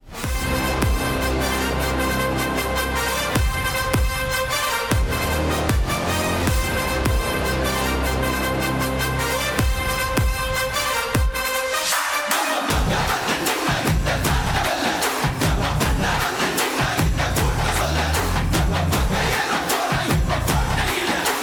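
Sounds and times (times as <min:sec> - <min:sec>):
intro background music: 0:00.0 - 0:21.4.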